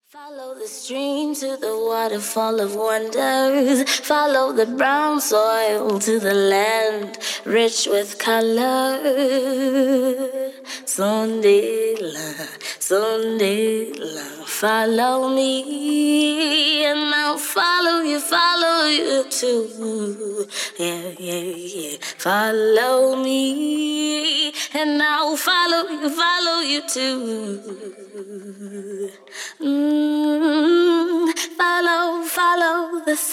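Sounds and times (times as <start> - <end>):
a cappella singing: 0.0 - 33.3.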